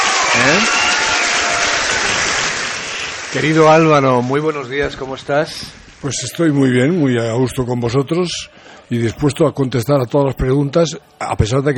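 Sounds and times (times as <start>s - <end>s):
audience applause: 0.0s - 8.3s
speech: 0.4s - 0.9s, 3.3s - 11.7s.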